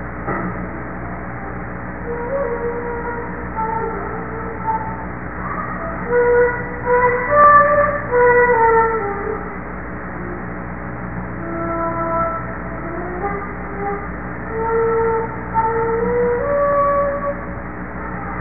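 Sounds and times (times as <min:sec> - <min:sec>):
flute: 0:02.0 - 0:09.5, 0:11.4 - 0:18.3.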